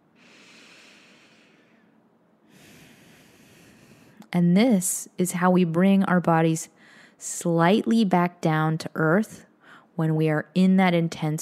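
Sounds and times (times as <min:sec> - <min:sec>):
slow deep breathing during a guided relaxation exercise: 0:00.1 - 0:04.2
speech: 0:04.3 - 0:11.4.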